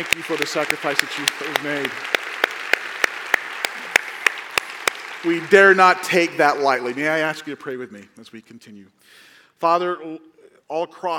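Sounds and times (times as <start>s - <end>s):
speech: 0.0s - 2.4s, 5.2s - 11.1s
audience applause: 0.0s - 7.6s.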